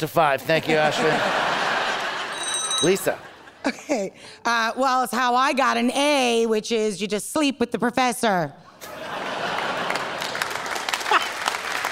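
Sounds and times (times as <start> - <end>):
speech: 0.0 - 1.5, 2.8 - 9.2
laughter: 0.5 - 2.4, 3.0 - 4.2, 8.8 - 11.6
round of applause from audience: 9.4 - 11.9.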